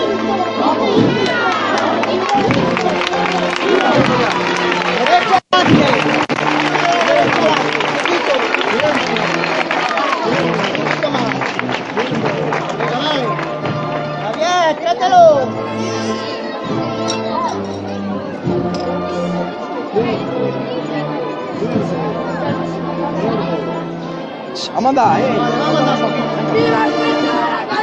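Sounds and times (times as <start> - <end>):
dense babble of voices: 0.0 - 27.8
crowd applauding at a street procession: 0.3 - 15.6
cheers: 1.1 - 13.3.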